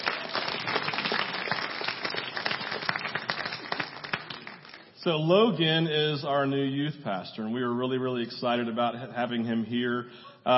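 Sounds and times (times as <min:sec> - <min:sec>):
audience clapping: 0:00.0 - 0:05.0
speech: 0:05.0 - 0:10.5.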